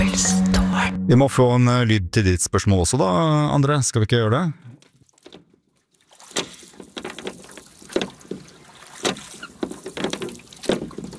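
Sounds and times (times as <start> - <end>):
speech: 0.2 - 4.8
person rowing a boat: 4.8 - 11.1.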